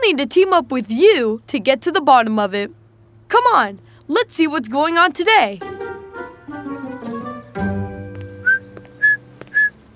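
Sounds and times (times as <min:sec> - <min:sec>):
speech: 0:00.1 - 0:05.8
soft sustained tonal musical background: 0:05.6 - 0:09.6
person whistling like a bird: 0:08.3 - 0:09.7.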